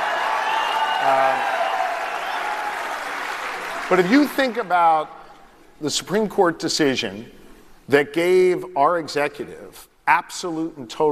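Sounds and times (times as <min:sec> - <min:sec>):
large stadium crowd booing: 0:00.0 - 0:03.9
speech: 0:01.0 - 0:01.5, 0:03.9 - 0:05.2, 0:05.8 - 0:11.1.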